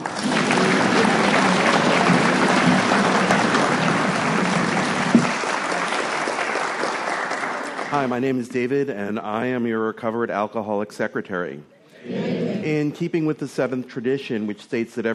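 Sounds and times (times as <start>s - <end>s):
group clapping: 0.0s - 8.3s
speech: 8.0s - 15.1s.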